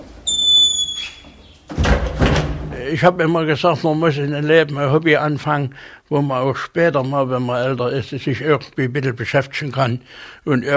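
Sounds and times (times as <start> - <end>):
loud rattling door clunk: 1.2 - 2.8
speech: 2.8 - 10.7.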